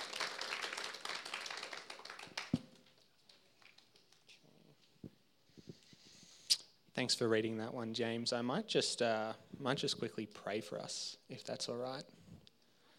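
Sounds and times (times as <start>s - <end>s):
audience clapping: 0.0s - 4.4s
speech: 7.0s - 12.2s.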